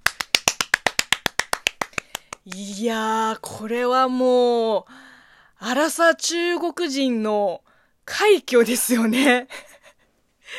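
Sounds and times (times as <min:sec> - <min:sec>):
applause: 0:00.0 - 0:02.5
speech: 0:02.4 - 0:09.7.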